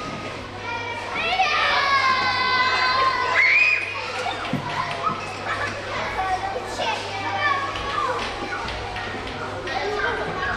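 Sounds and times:
children chattering during the holidays: 0.0s - 10.5s.

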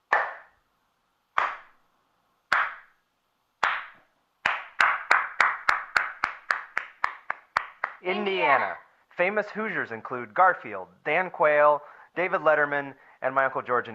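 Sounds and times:
slow hand clapping: 0.0s - 0.6s, 1.3s - 1.8s, 2.5s - 3.0s, 3.6s - 8.0s
speech: 8.0s - 13.9s.

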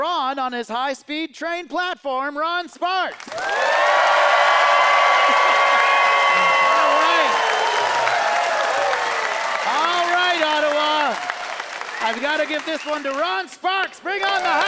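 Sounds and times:
speech: 0.0s - 4.4s, 5.3s - 6.6s, 12.0s - 14.6s
crowd applauding: 3.2s - 13.5s, 14.1s - 14.6s.

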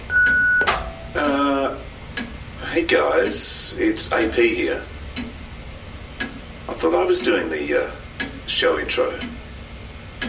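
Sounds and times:
answering machine beep tone: 0.1s - 1.1s
speech: 2.8s - 5.0s, 6.8s - 9.4s.

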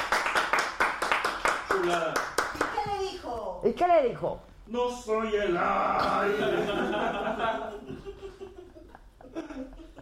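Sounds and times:
studio applause: 0.0s - 2.8s
speech: 1.8s - 2.3s, 2.9s - 8.0s
laughter: 6.0s - 10.0s.

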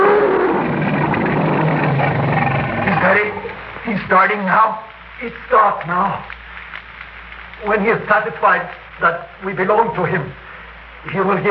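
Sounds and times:
tiger growling: 0.0s - 3.8s
speech: 4.1s - 6.4s, 7.6s - 10.4s, 11.0s - 11.4s.

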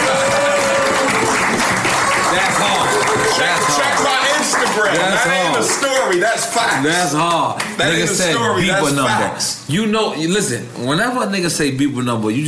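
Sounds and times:
audience applause: 0.0s - 7.0s
speech: 4.8s - 12.4s.

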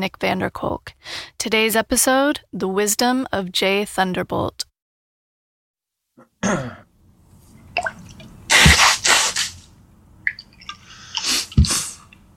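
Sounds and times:
speech: 0.0s - 4.7s, 6.2s - 6.8s
sneeze: 8.5s - 9.6s, 11.2s - 12.1s.

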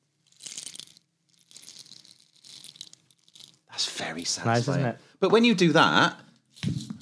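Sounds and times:
rain stick being shaken: 0.2s - 3.7s
speech: 4.0s - 6.2s.

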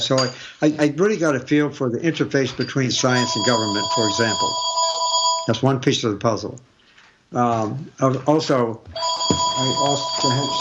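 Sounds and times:
speech: 0.0s - 4.8s, 5.5s - 6.7s, 7.3s - 10.5s
telephone ringing: 2.6s - 5.6s, 8.9s - 10.5s.

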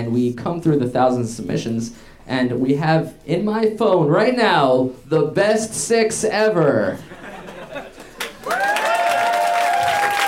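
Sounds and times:
speech: 0.0s - 7.2s
laughter: 7.0s - 8.5s
audience applause: 8.0s - 10.2s.

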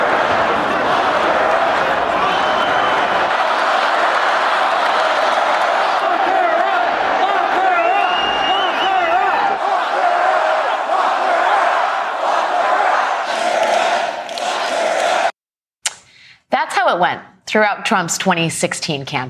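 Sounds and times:
large stadium crowd chanting a slogan: 0.0s - 15.4s
speech: 17.0s - 19.2s.

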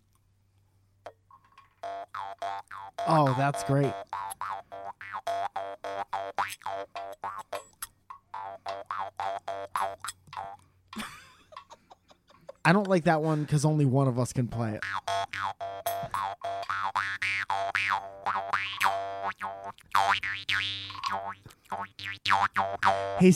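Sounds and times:
African stick and mouth frog instrument plucked: 1.8s - 10.6s, 14.8s - 23.2s
speech: 2.1s - 4.2s, 12.7s - 15.1s, 23.2s - 23.3s
laughter: 11.0s - 13.5s.

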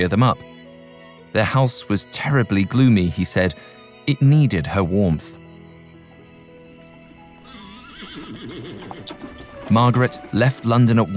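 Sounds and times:
speech: 0.0s - 0.6s, 1.3s - 5.4s, 8.0s - 11.1s
carriage hooves clopping: 6.5s - 11.1s
horse whinnying: 7.3s - 10.4s.

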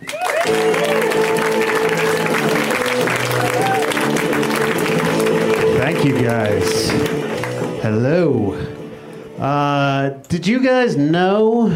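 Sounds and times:
audience applause: 0.0s - 7.8s
speech: 7.9s - 8.8s, 9.4s - 11.7s.

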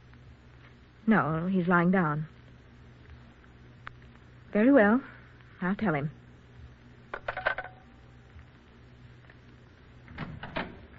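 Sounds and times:
low hum: 0.0s - 10.9s
speech: 1.1s - 2.4s, 4.5s - 6.2s
door closing: 10.1s - 10.9s.

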